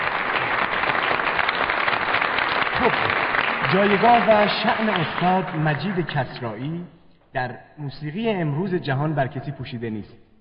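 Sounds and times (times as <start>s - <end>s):
audience clapping for a music group after its performance: 0.0s - 6.6s
speech: 3.7s - 10.2s.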